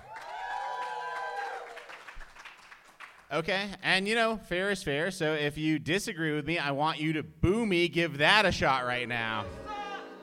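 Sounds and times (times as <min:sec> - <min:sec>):
crowd cheering: 0:00.0 - 0:02.4, 0:09.2 - 0:10.2
clapping: 0:00.0 - 0:03.3
speech: 0:03.3 - 0:09.6
high whooping voices: 0:09.3 - 0:10.2.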